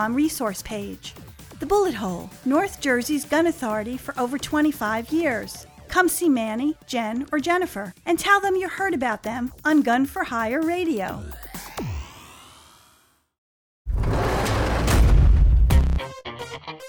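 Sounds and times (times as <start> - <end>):
speech: 0.0 - 11.4
jail door slamming shut: 13.9 - 15.9.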